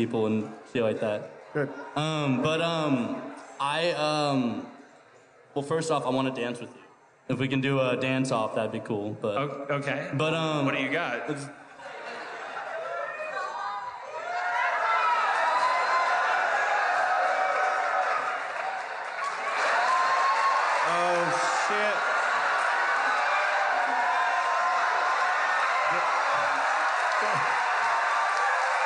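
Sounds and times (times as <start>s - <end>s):
speech: 0.0s - 4.7s, 5.6s - 11.6s
laughter: 11.6s - 13.6s, 25.9s - 27.7s
large crowd applauding: 12.4s - 28.8s.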